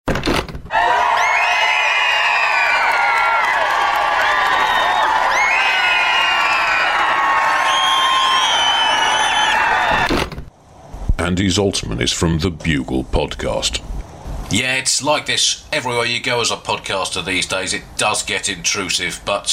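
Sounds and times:
crowd of podcast fans cheering and screaming: 0:00.7 - 0:10.1
speech: 0:11.4 - 0:13.9, 0:14.5 - 0:19.5.

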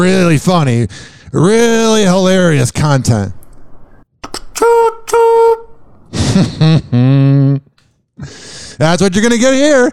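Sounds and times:
speech: 0:00.0 - 0:03.4, 0:04.3 - 0:04.9, 0:06.4 - 0:09.9
person imitating a train with their voice: 0:04.3 - 0:05.8.

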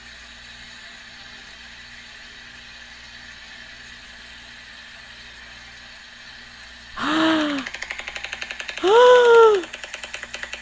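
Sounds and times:
huge-billed bird's loud rapid clattering clicks: 0:07.5 - 0:08.8, 0:09.6 - 0:10.6.

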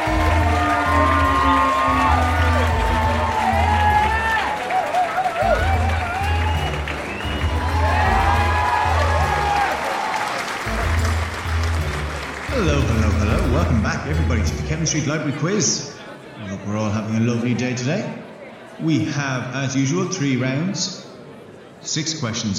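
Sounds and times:
audience applauding and cheering for a library quiz host: 0:00.0 - 0:14.4
speech: 0:14.8 - 0:15.9, 0:16.7 - 0:18.2, 0:18.8 - 0:21.0, 0:21.8 - 0:22.5.

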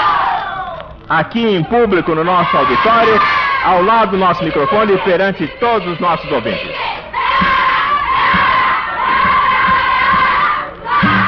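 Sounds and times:
speech: 0:01.1 - 0:06.9
enthusiastic crowd cheering in an auditorium: 0:02.1 - 0:11.2
rhythmic thumps: 0:05.4 - 0:11.2.

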